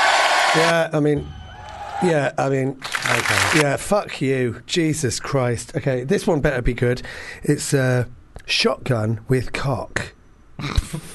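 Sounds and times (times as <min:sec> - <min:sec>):
people whooping: 0:00.0 - 0:02.2
cheering sound effect: 0:00.0 - 0:03.6
speech: 0:00.5 - 0:01.4, 0:02.0 - 0:11.1.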